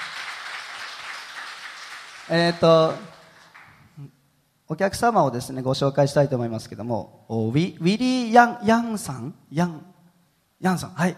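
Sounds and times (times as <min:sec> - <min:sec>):
audience applause: 0:00.0 - 0:03.9
speech: 0:02.3 - 0:03.1, 0:04.0 - 0:09.9, 0:10.6 - 0:11.1.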